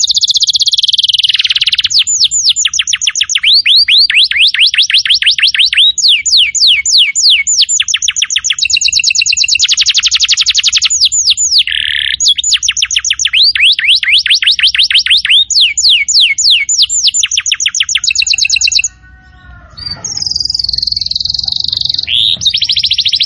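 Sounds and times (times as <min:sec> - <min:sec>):
canary song: 0:00.0 - 0:23.2.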